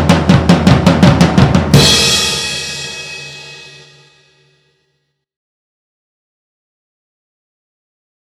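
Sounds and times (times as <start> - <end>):
drum solo: 0.0 - 4.3.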